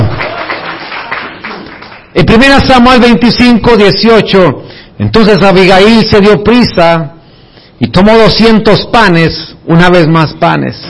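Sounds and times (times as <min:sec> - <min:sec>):
audience applause: 0:00.0 - 0:02.1
speech: 0:02.2 - 0:07.2, 0:07.8 - 0:10.8.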